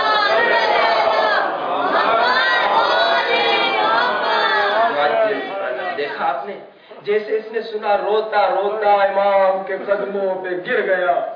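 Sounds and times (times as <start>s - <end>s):
large crowd loudly reciting salawat in unison: 0.0s - 6.2s
speech: 7.1s - 11.3s.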